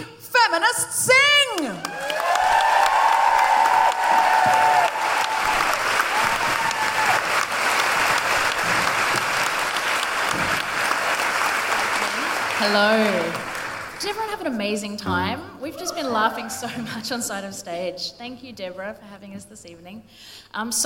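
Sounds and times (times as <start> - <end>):
speech: 0.5 - 2.2, 12.6 - 13.4, 14.1 - 20.8
high hooting cheer: 1.8 - 10.0
audience applause: 1.8 - 14.0.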